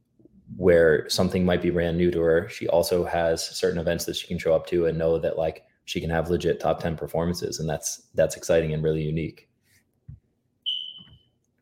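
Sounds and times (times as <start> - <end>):
speech: 0.6 - 9.5
smoke alarm chirp: 10.6 - 11.4.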